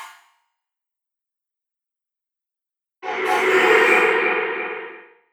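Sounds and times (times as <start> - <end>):
space zoom whoosh: 3.0 - 5.1.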